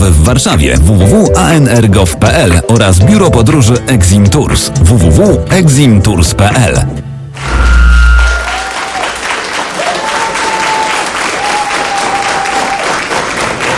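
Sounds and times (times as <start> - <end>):
speech: 0.3 - 7.8
audience applause: 7.4 - 13.7.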